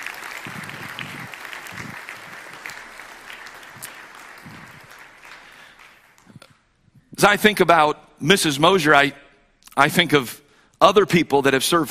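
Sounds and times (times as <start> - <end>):
audience applause: 0.0 - 6.4
speech: 7.2 - 9.2, 9.8 - 11.8.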